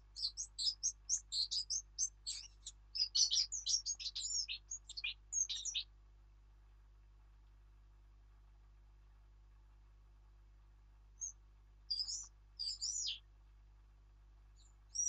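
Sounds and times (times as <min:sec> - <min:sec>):
Sylvia atricapilla: 0:00.0 - 0:05.9, 0:11.2 - 0:13.2, 0:14.6 - 0:15.0.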